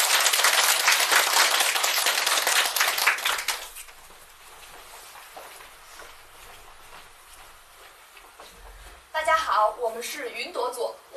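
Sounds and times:
audience applause: 0.0s - 3.8s
speech: 9.6s - 11.0s.

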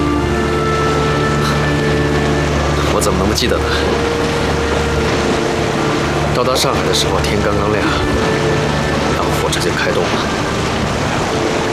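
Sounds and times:
sailboat moving across water, low droning hum: 0.0s - 11.7s
water washing under moving sailboat: 0.0s - 11.7s
wind: 0.0s - 11.7s
speech: 3.0s - 4.3s, 6.4s - 8.6s, 9.5s - 10.6s.

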